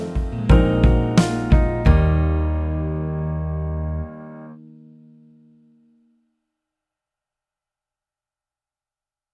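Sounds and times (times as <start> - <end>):
alto voice: 0.0 - 4.6
piano: 0.0 - 5.8.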